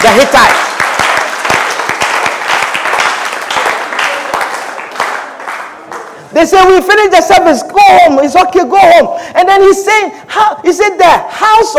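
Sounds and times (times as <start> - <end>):
speech: 0.0 - 0.7, 6.4 - 11.7
audience applause: 0.0 - 6.2.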